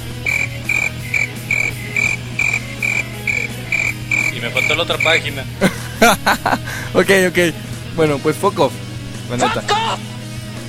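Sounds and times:
crickets chirping sound effect: 0:00.0 - 0:05.3
laughter: 0:04.4 - 0:07.1
speech: 0:04.6 - 0:10.2.

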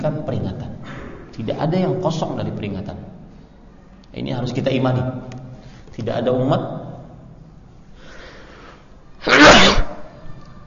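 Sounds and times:
speech: 0:01.4 - 0:03.2, 0:04.2 - 0:05.4, 0:06.0 - 0:06.8
sneeze: 0:09.2 - 0:10.2.

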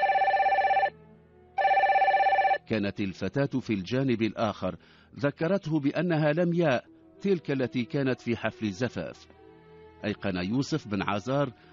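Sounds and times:
telephone ringing as a call is placed: 0:00.0 - 0:01.0, 0:01.6 - 0:02.7
speech: 0:02.7 - 0:09.4, 0:10.0 - 0:11.7.

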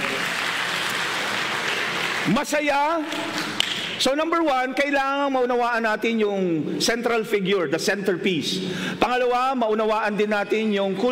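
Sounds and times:
congregation applause during a church preaching service: 0:00.0 - 0:04.1
speech: 0:02.3 - 0:03.4, 0:04.0 - 0:11.1.

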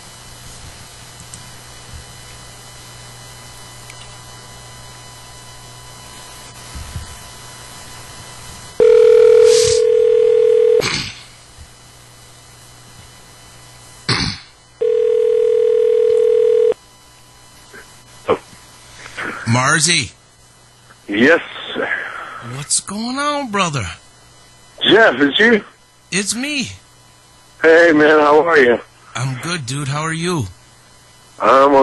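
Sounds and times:
long steady phone ringback tones: 0:08.8 - 0:10.8, 0:14.8 - 0:16.8
speech: 0:19.6 - 0:20.1, 0:21.2 - 0:21.4, 0:22.7 - 0:24.0, 0:25.0 - 0:26.8, 0:27.6 - 0:30.6, 0:31.4 - 0:31.8.

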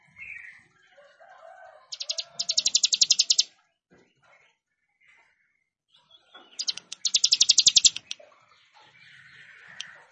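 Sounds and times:
plain prinia song: 0:01.9 - 0:03.5, 0:06.5 - 0:08.2.

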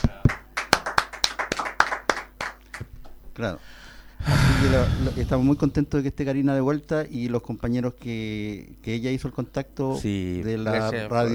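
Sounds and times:
sparse applause from a few people welcoming a guest on a radio program: 0:00.0 - 0:02.9
speech: 0:03.4 - 0:11.3.

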